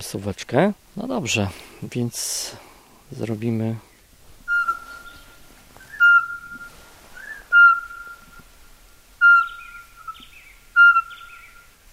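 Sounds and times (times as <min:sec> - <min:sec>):
speech: 0:00.0 - 0:03.9
birds whistling and trilling: 0:04.5 - 0:08.5, 0:09.2 - 0:11.9.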